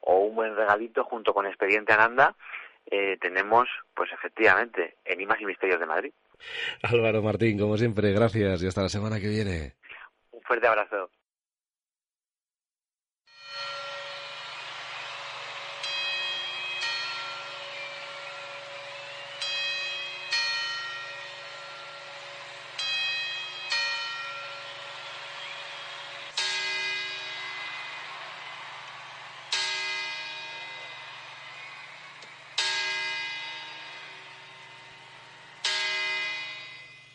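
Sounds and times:
speech: 0:00.2 - 0:09.8, 0:10.4 - 0:11.2
large clock bell chiming toward midnight: 0:13.4 - 0:37.1.

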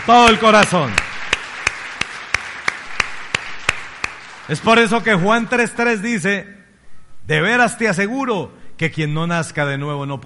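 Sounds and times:
speech: 0:00.0 - 0:01.1, 0:04.5 - 0:06.6, 0:07.3 - 0:10.2
audience clapping in a steady rhythm: 0:00.0 - 0:06.0.

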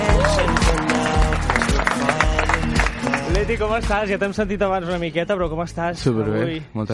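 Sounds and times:
audience cheering: 0:00.0 - 0:03.4
audience clapping: 0:00.0 - 0:04.4
loud upbeat music with a pounding rhythmic beat: 0:00.0 - 0:06.4
speech: 0:03.4 - 0:06.9.

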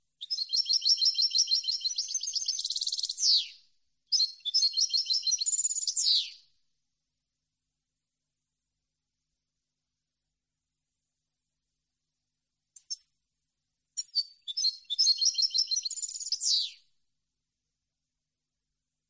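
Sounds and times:
European goldfinch singing: 0:00.2 - 0:03.4, 0:04.2 - 0:06.4, 0:14.0 - 0:16.7.

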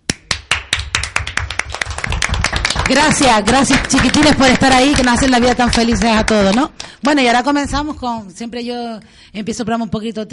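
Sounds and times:
applause: 0:00.0 - 0:07.2
speech: 0:02.9 - 0:10.3.

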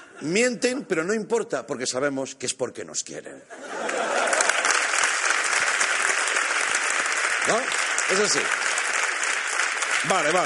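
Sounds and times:
speech: 0:00.2 - 0:03.9, 0:07.5 - 0:08.6, 0:10.0 - 0:10.4
laughter: 0:03.5 - 0:04.9
crowd applauding: 0:03.8 - 0:10.4.

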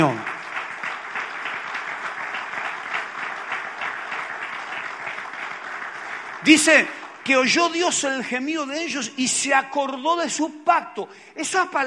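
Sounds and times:
audience applause: 0:00.0 - 0:07.7
speech: 0:06.4 - 0:11.8.

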